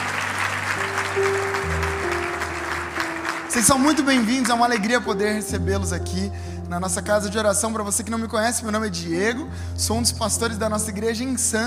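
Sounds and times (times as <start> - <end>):
audience applause: 0.0 - 5.1
speech: 3.6 - 11.6.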